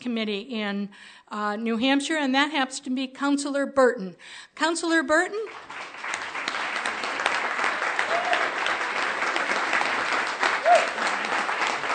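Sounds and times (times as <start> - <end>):
speech: 0.0 - 6.1
applause from a sizable audience: 5.5 - 11.9
faint whoop or cheer: 8.0 - 8.7, 10.6 - 11.1.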